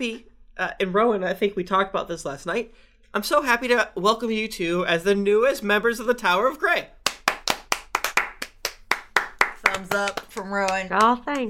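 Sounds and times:
speech: 0.0s - 7.0s, 9.8s - 11.4s
people clapping hands: 7.0s - 11.4s.

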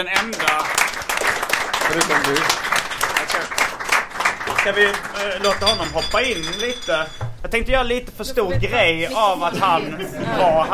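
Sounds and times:
speech: 0.0s - 0.7s, 1.9s - 3.7s, 4.6s - 10.7s
audience applause: 0.0s - 6.8s
laughter: 9.0s - 10.7s.

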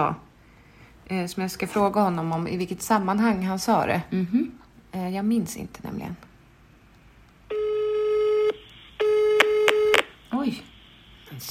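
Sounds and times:
speech: 0.0s - 0.2s, 1.1s - 6.3s, 10.4s - 10.7s
telephone line tone while placing a call: 7.5s - 10.4s.

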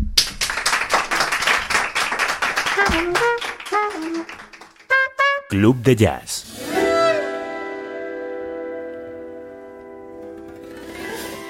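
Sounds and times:
crowd applause: 0.2s - 5.0s
speech: 3.0s - 3.4s, 4.0s - 4.4s, 5.5s - 6.4s.

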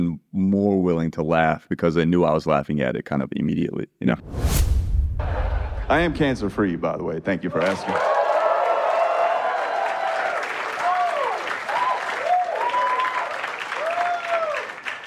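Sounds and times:
speech: 0.0s - 4.8s, 5.9s - 8.2s
crowd applauding: 7.5s - 15.0s
whoops and cheers: 7.6s - 14.8s.

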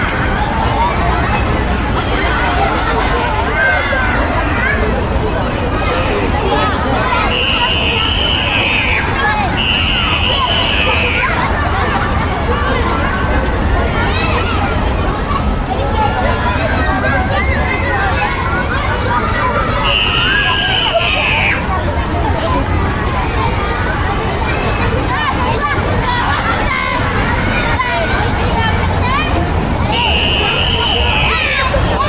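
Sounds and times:
many children chattering and shouting in a school playground at recess: 0.0s - 32.0s.

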